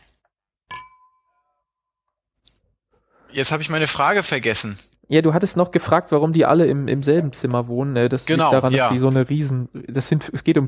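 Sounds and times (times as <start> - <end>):
glasses clinking in a toast: 0.7 - 1.5
speech: 3.3 - 10.6.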